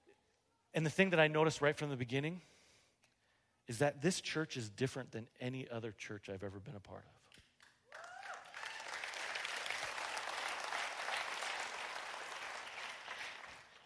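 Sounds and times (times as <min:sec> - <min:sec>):
speech: 0:00.7 - 0:02.6, 0:03.7 - 0:07.2
audience clapping in church: 0:07.4 - 0:13.8.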